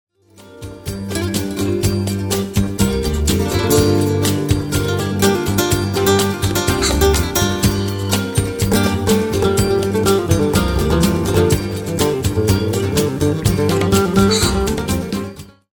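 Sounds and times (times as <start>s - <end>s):
flamenco guitar: 0.3s - 15.7s.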